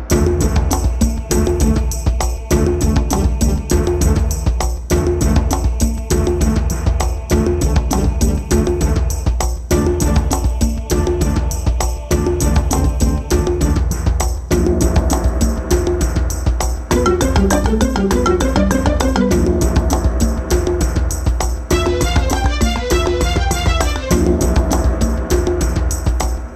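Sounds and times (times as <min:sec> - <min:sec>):
ethnic symphonic danger music: 0:00.1 - 0:26.5.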